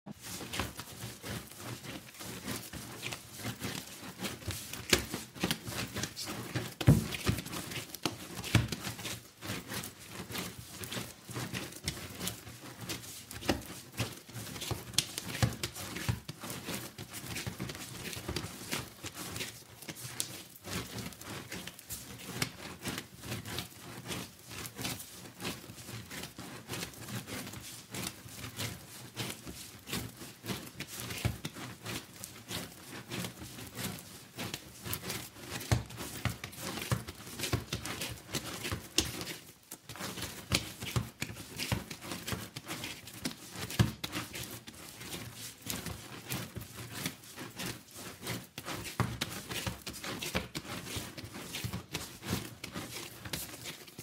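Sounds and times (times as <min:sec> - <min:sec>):
kneading dough: 0:00.1 - 0:54.0.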